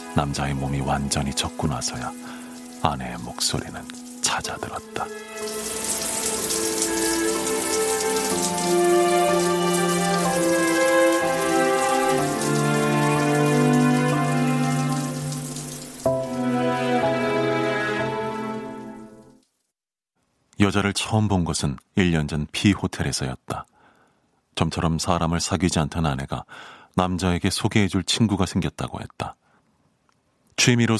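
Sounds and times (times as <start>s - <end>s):
shower water pouring at full pressure: 0.0s - 19.6s
speech: 0.2s - 7.4s, 20.7s - 23.7s, 24.6s - 29.4s, 30.6s - 30.9s.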